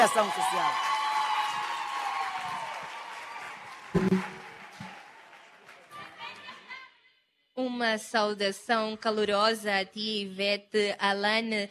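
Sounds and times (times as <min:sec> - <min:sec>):
speech: 0:00.0 - 0:00.9, 0:07.8 - 0:11.6
audience applause: 0:00.0 - 0:06.6
brief cheer: 0:00.1 - 0:06.8.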